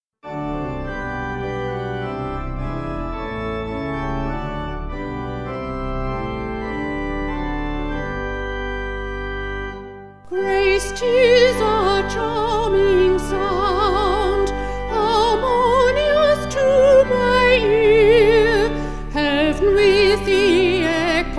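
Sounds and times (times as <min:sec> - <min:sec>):
organ: 0:00.2 - 0:21.3
person singing: 0:10.3 - 0:21.3.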